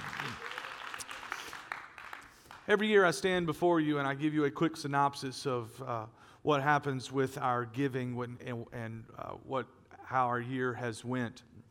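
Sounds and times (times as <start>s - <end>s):
audience clapping hands: 0.0s - 2.8s
speech: 2.7s - 11.6s.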